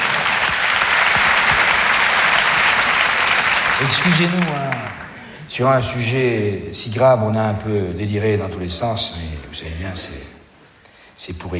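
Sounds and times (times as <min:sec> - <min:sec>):
audience applause: 0:00.0 - 0:05.4
speech: 0:03.8 - 0:10.3, 0:11.2 - 0:11.5.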